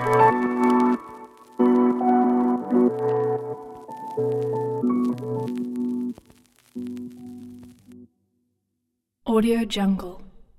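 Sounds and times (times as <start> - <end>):
lofi hip hop background music: 0.0 - 6.2.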